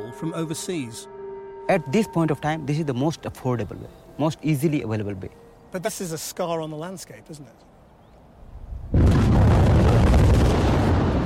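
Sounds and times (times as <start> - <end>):
speech: 0.2 - 7.7
explosive blasting at an open-cast coal mine in India: 8.9 - 11.2.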